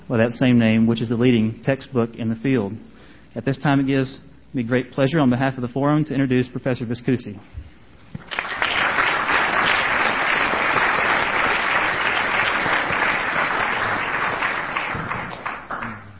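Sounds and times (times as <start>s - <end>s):
speech: 0.1s - 7.6s
room of people applauding: 8.2s - 16.1s.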